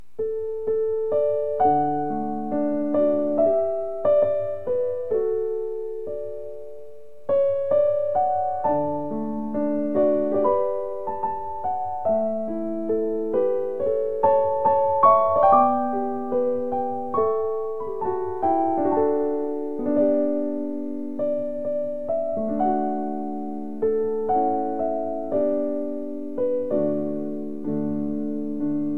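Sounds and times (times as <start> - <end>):
piano: 0.0 - 28.9.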